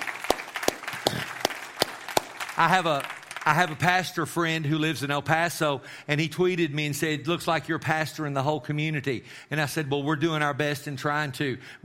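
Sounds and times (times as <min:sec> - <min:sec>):
audience clapping: 0:00.0 - 0:04.1
speech: 0:02.6 - 0:11.8.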